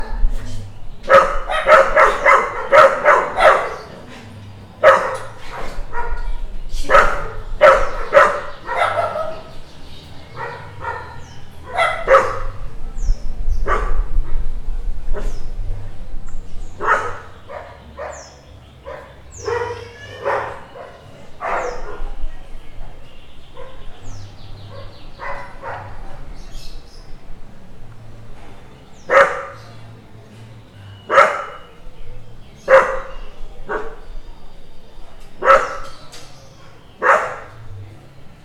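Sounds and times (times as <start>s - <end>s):
dogs barking: 1.0s - 9.7s, 10.3s - 12.8s, 13.5s - 14.5s, 16.7s - 22.3s, 23.5s - 26.7s, 29.0s - 29.8s, 31.0s - 31.8s, 32.6s - 34.1s, 35.0s - 37.7s.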